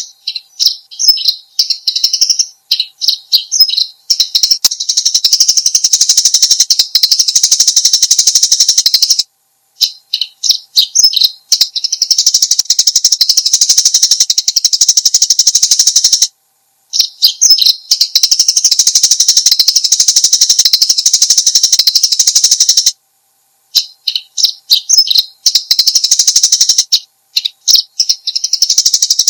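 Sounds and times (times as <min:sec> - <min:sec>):
Eurasian tree sparrow chattering: 0:00.0 - 0:09.2, 0:09.8 - 0:16.3, 0:16.9 - 0:23.0, 0:23.8 - 0:29.2.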